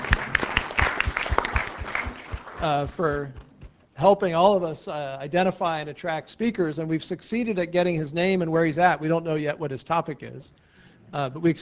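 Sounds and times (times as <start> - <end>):
audience at a public lecture applauding: 0.0 - 3.3
speech: 2.6 - 3.4, 4.0 - 11.6.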